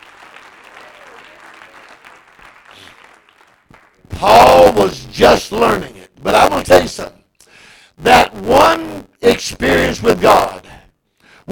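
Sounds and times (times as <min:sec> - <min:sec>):
audience clapping: 0:00.0 - 0:04.4
speech: 0:04.2 - 0:07.2, 0:08.4 - 0:10.5.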